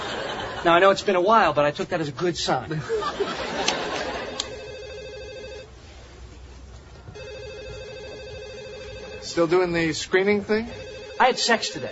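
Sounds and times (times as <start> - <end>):
laughter: 0.0 - 0.8, 2.7 - 4.6
low hum: 0.0 - 11.9
speech: 0.6 - 4.0, 9.3 - 11.9
telephone ringing with electronic trill: 3.8 - 5.7, 7.2 - 10.0, 10.6 - 11.9.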